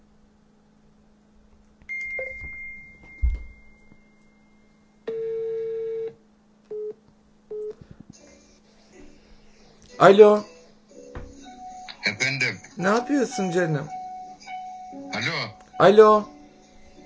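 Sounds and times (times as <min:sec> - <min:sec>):
telephone call signal tones while calling a television line: 0:01.9 - 0:04.0, 0:05.1 - 0:07.8
speech: 0:10.0 - 0:10.5, 0:12.8 - 0:14.0, 0:15.2 - 0:16.4.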